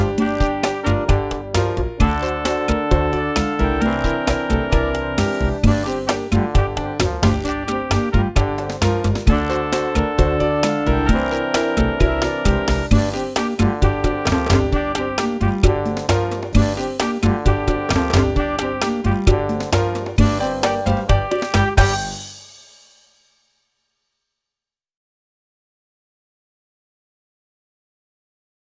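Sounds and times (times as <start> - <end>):
clarinet: 0.0 - 22.3.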